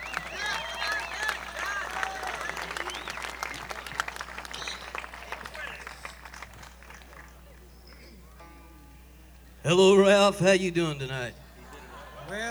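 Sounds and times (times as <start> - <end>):
large crowd applause for performers: 0.0 - 8.4
laughter: 0.0 - 8.4, 10.2 - 12.4
speech: 9.7 - 11.4.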